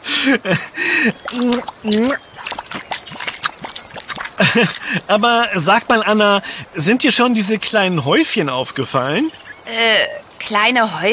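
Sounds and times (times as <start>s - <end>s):
laughter: 0.1s - 1.2s, 4.4s - 5.6s
speech: 0.2s - 2.3s, 4.4s - 11.1s
short pitched vocal sounds: 1.0s - 2.2s
feet squelching in wet mudflat sand: 1.0s - 5.7s.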